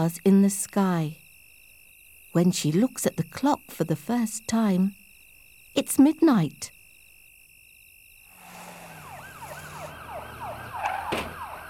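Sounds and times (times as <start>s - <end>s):
speech: 0.0s - 1.2s, 2.3s - 5.0s, 5.8s - 6.8s
police car or ambulance siren: 8.5s - 11.6s.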